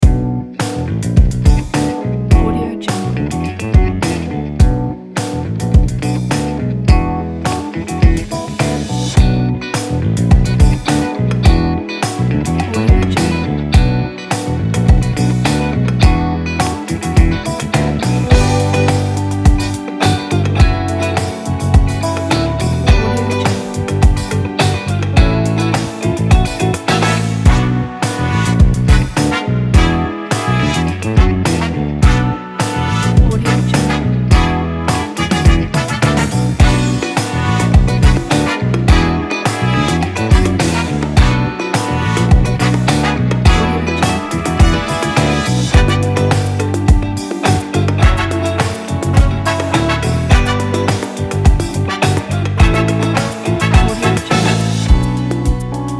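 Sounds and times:
big city energetic funk music: 0:00.0 - 0:55.9.

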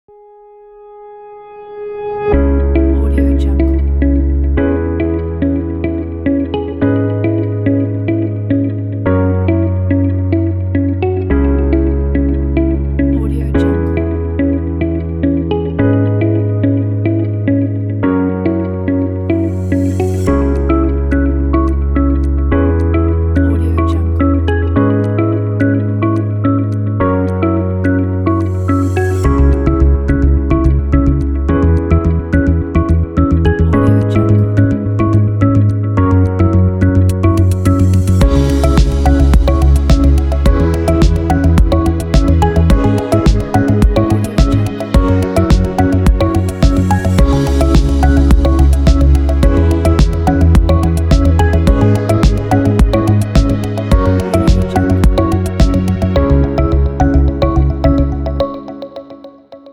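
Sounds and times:
corporate technology intro music: 0:00.8 - 0:59.7.

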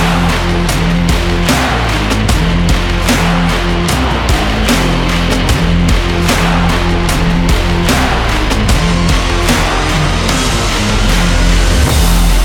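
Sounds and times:
rock music for sport action: 0:00.0 - 0:12.4.

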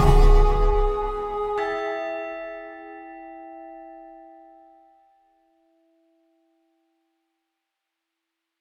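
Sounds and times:
spaghetti western music: 0:00.0 - 0:03.9.

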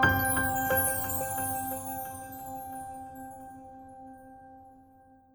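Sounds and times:
piano logo jingle: 0:00.1 - 0:03.5.

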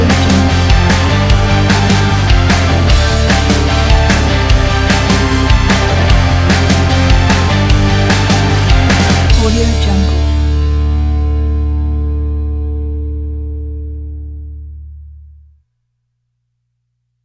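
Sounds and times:
upbeat rock music: 0:00.0 - 0:13.7.

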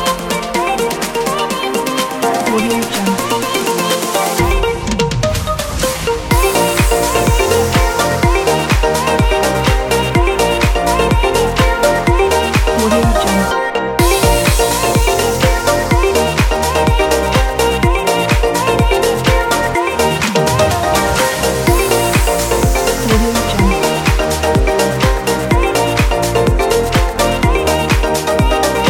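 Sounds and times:
upbeat summer dance pop background music: 0:00.0 - 0:28.8.

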